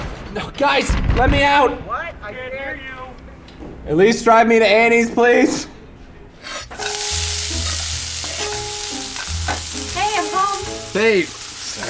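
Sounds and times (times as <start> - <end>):
speech: 0.4 - 3.0, 3.8 - 5.7, 10.9 - 11.8
bacon and mussels sizzling in a pan: 6.7 - 11.8.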